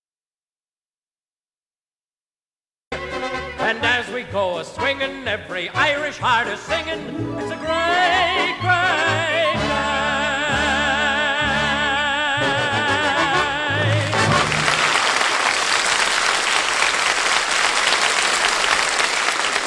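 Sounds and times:
music: 2.9 - 15.0
speech: 3.7 - 10.0
crowd cheering and applauding at the St. Patrick's Day Parade on Fifth Avenue: 13.8 - 19.6.

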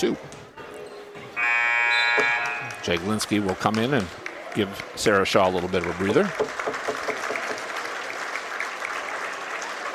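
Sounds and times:
speech: 0.0 - 0.4, 2.8 - 7.2
fans applauding for the Assumption Royals: 2.2 - 9.9.

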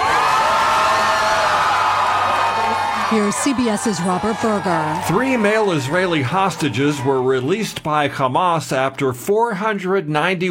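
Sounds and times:
crowd cheering and whooping in Tel Aviv celebrating a hostage release: 0.0 - 7.8
speech: 3.1 - 10.4.

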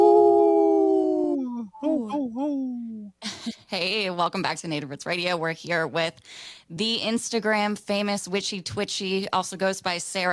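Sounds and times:
wolf howling: 0.0 - 2.1
speech: 3.7 - 10.3.

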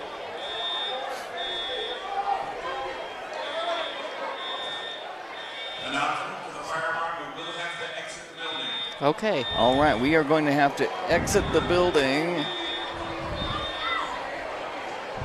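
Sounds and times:
crowd chatter and shuffling: 0.0 - 15.2
school building high-pitched electronic alarm tone: 0.4 - 2.0, 3.4 - 6.2, 7.4 - 10.1, 11.4 - 14.0
speech: 9.0 - 12.6.

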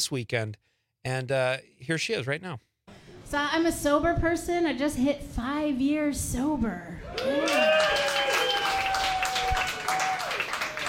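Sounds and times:
speech: 0.0 - 2.7, 3.3 - 8.1
person whooping or cheering: 7.0 - 10.8
polite audience applause: 7.1 - 10.8.

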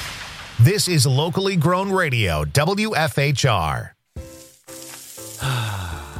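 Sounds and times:
speech: 0.7 - 4.0
Gain scent booster beads poured into laundry: 4.2 - 6.0.

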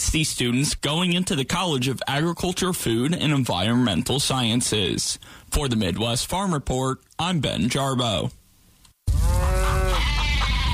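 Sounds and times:
speech: 0.1 - 8.4
farm animals bleating: 9.2 - 10.7.

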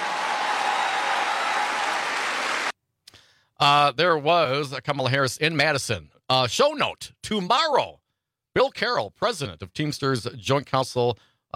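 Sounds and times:
crowd cheering: 0.0 - 2.7
speech: 3.6 - 8.0, 8.6 - 11.5.

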